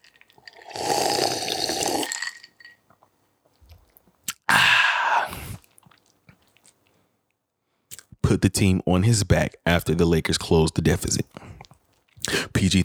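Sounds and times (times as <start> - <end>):
person sipping a drink: 0.0 - 7.0, 7.9 - 8.1
speech: 8.4 - 11.5, 12.6 - 12.8.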